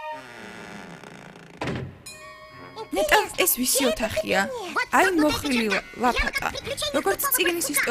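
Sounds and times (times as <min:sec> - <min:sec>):
door opening: 0:00.1 - 0:03.0
heavy thunk: 0:01.6 - 0:02.1
speech: 0:02.9 - 0:07.8.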